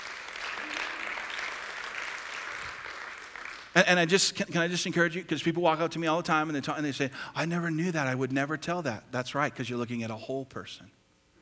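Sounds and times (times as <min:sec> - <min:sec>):
crowd applauding: 0:00.0 - 0:03.9
speech: 0:03.8 - 0:11.0.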